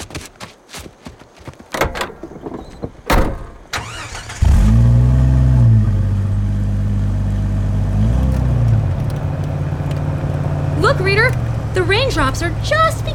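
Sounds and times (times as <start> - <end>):
sharp clunks and rattles: 1.7 - 5.0, 7.9 - 13.1
open jeep engine roaring to life and driving off: 3.8 - 13.1
speech: 12.2 - 13.1.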